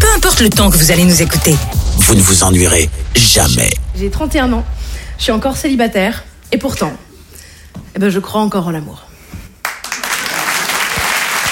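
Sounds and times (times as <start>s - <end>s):
speech: 0.4s - 7.0s, 7.9s - 9.1s
audience applause: 9.6s - 11.5s.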